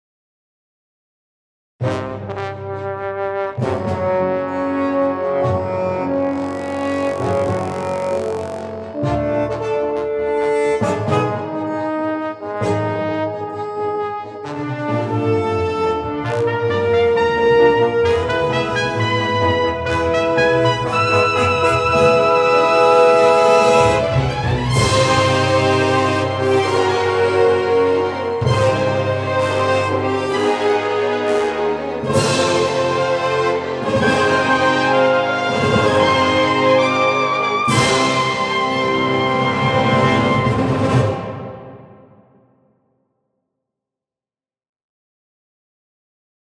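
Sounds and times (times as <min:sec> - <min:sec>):
brass instruments: 0:01.8 - 0:42.6.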